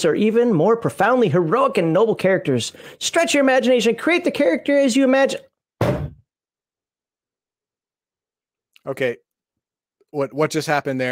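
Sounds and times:
speech: 0.0 - 6.0, 8.8 - 9.3, 10.1 - 11.1
head banging against a table: 5.8 - 6.3.

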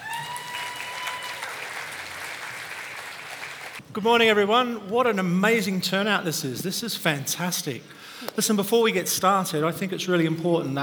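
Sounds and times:
conference audience standing ovation applause: 0.0 - 3.8
speech: 4.0 - 10.8.

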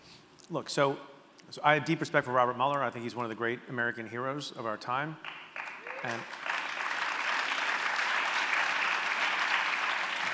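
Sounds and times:
speech: 0.5 - 5.4, 6.0 - 6.4
audience clapping at a book talk about Robert Mueller: 5.2 - 10.3.

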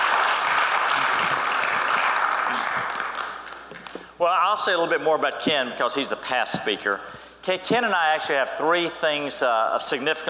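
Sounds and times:
audience applauding as a speaker is welcomed up to teach: 0.0 - 4.0
speech: 4.2 - 10.2.

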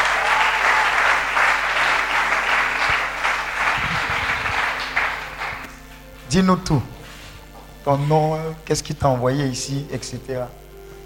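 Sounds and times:
congregation clapping to acclaim God at a Christian retreat: 0.0 - 6.3
speech: 6.3 - 6.9, 7.9 - 10.6.

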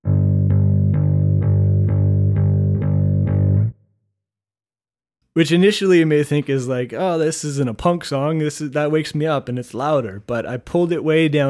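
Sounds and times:
electric bass with light fuzz distortion: 0.0 - 3.8
speech: 5.4 - 11.4.

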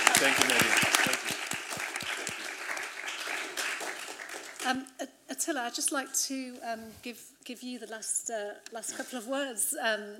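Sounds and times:
audience applause: 0.0 - 4.8
speech: 0.2 - 1.2, 4.7 - 10.1.

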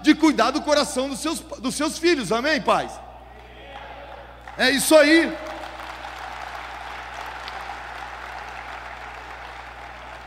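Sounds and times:
low constant hum: 0.0 - 10.2
speech: 0.3 - 3.0, 4.6 - 5.5
audience applause: 4.4 - 10.2.

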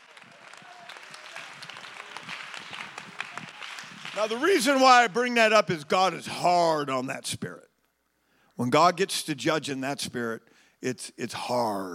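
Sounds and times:
audience clapping hands: 0.0 - 5.4
speech: 4.2 - 7.7, 8.6 - 11.9.

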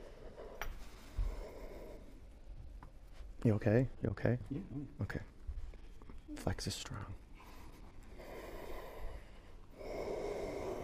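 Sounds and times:
soft breath drawn in during a breathing exercise: 0.0 - 2.3, 7.3 - 10.8
speech: 3.4 - 5.4, 6.3 - 7.2.

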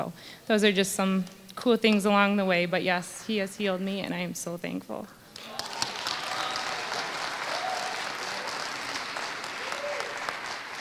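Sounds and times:
speech: 0.0 - 5.2
faint cheers or whoops: 5.4 - 8.9, 9.5 - 10.4
audience applause: 5.4 - 10.7.

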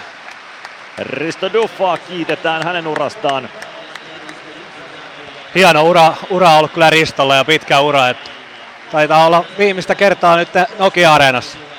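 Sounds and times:
arena crowd applauding: 0.0 - 11.7
speech: 1.0 - 3.7, 5.5 - 8.3, 8.9 - 11.7.

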